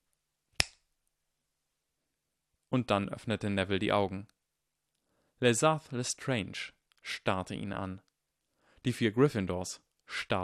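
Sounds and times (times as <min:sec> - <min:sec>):
finger snap: 0:00.6 - 0:00.8
speech: 0:02.7 - 0:04.4, 0:05.4 - 0:08.1, 0:08.8 - 0:10.4.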